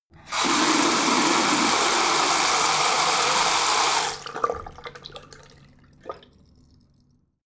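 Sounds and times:
bathroom tap water flowing very hard: 0:00.2 - 0:05.8.

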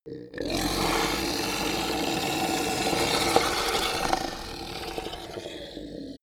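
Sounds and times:
reptile choking: 0:00.0 - 0:06.2.

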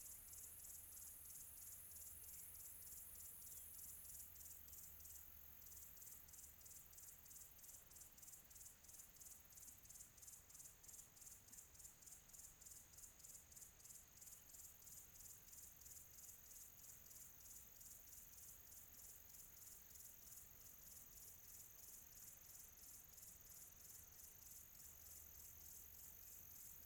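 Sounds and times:
crickets chirping in tropical ambience: 0:00.0 - 0:26.8.

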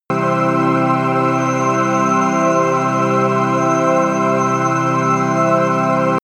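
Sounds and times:
promo synth pad: 0:00.1 - 0:06.2.

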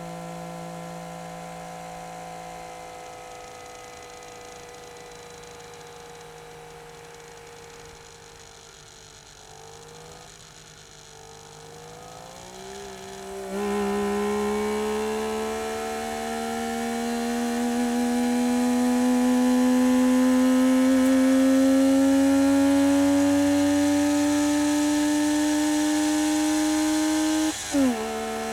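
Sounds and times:
Saab 92 car engine driving: 0:13.5 - 0:28.5.

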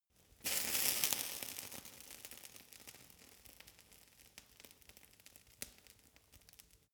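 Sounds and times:
fire torch sizzling: 0:00.4 - 0:05.8.

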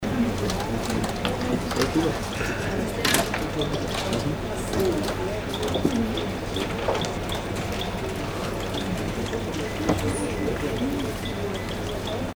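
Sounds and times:
office ambience: 0:00.0 - 0:12.3.

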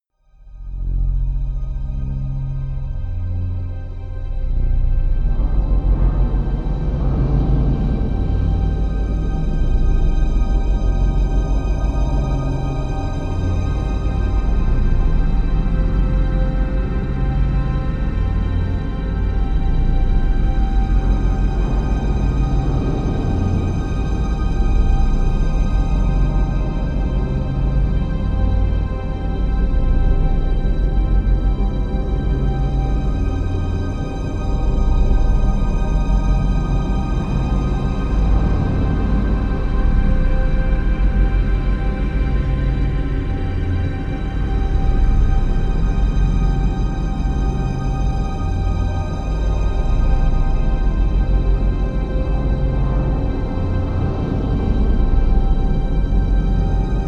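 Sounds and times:
dark minor string drone: 0:00.5 - 0:57.0.

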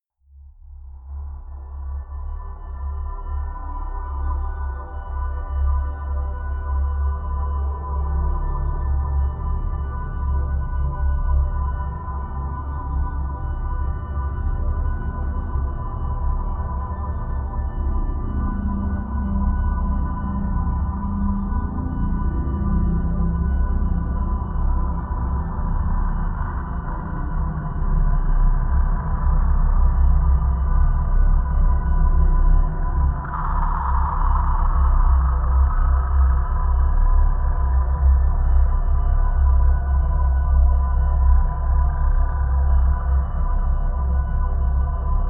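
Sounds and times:
underworld drone: 0:00.4 - 0:45.2.

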